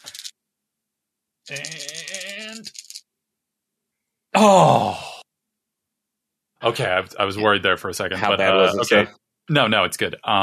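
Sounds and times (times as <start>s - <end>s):
dice rolling: 0.0s - 0.4s, 1.5s - 3.1s
speech: 1.5s - 2.8s, 4.4s - 5.0s, 6.7s - 10.4s.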